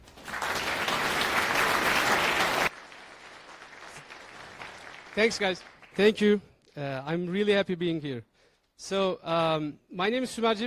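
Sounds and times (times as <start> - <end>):
audience applause: 0.0 - 6.0
speech: 5.2 - 10.6.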